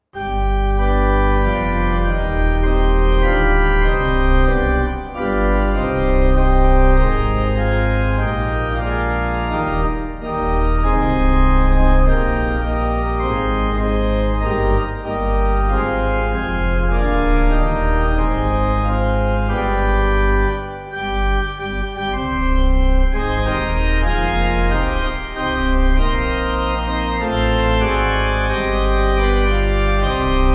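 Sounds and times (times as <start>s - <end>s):
pipe organ: 0.0s - 30.5s.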